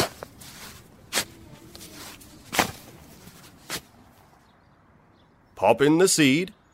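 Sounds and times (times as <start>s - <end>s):
spade digging a hole in soil: 0.0s - 4.0s
speech: 5.6s - 6.6s.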